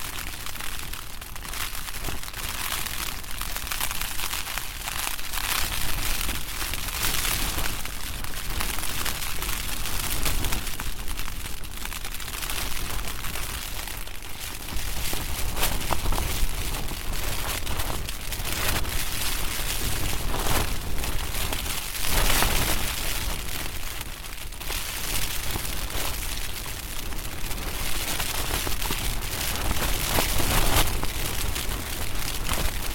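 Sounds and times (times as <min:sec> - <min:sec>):
wind blowing against a small REI tent: 0:00.0 - 0:32.9
tent fabric fluttering: 0:14.5 - 0:23.8, 0:24.5 - 0:32.9.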